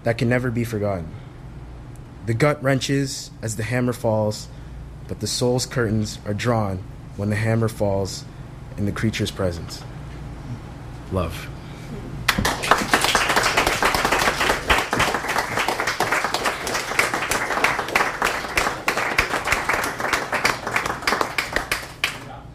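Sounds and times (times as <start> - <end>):
speech: 0.0 - 1.3, 2.3 - 9.9, 11.1 - 11.6
audience applause: 12.3 - 22.4.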